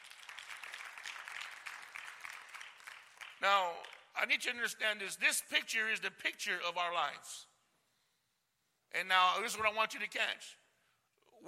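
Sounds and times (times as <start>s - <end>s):
audience clapping: 0.0s - 4.2s
speech: 3.4s - 7.5s, 8.9s - 10.6s.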